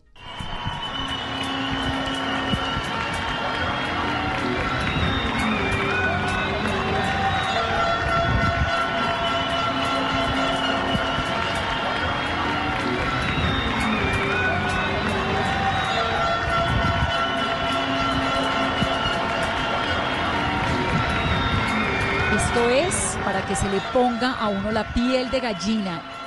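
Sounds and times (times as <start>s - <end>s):
crowd applauding for health workers: 0.0s - 26.2s
whistles: 0.2s - 23.0s
shouted voices: 0.6s - 26.2s
speech: 23.8s - 26.2s.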